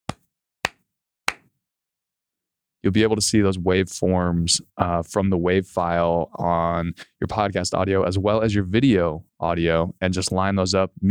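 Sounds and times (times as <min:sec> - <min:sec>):
sharp hand claps for audio sync: 0:00.1 - 0:01.5
speech: 0:02.8 - 0:11.0.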